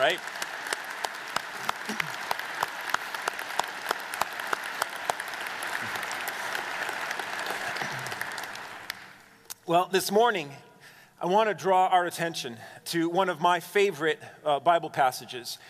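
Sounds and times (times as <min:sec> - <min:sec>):
speech: 0:00.0 - 0:00.4, 0:01.9 - 0:02.2, 0:09.7 - 0:15.6
audience applause: 0:00.0 - 0:09.3.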